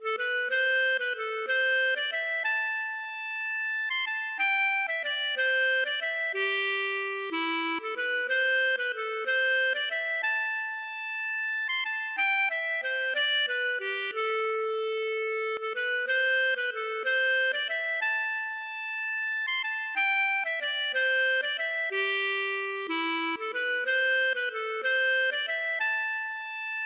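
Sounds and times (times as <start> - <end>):
ecossaise waltz music: 0.0 - 26.8.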